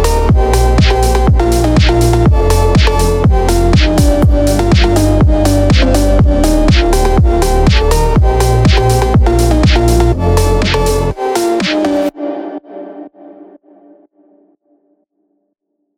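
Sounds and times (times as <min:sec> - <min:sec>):
phonk music: 0:00.0 - 0:12.1.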